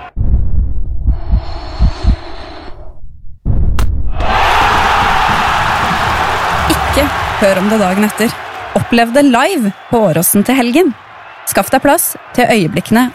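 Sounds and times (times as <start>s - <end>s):
low thumps: 0.0s - 7.4s
football stadium crowd roaring at penalty: 4.2s - 13.1s
speech: 7.0s - 13.1s.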